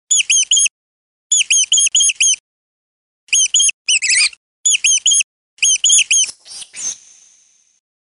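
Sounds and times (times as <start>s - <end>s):
mouse squeaking: 0.1s - 0.7s, 1.3s - 2.4s, 3.3s - 7.0s.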